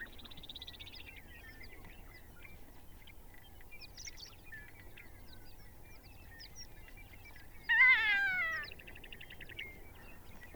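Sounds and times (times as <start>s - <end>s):
Ferruginous Hawk Buteo regalis calling: 7.7s - 8.7s.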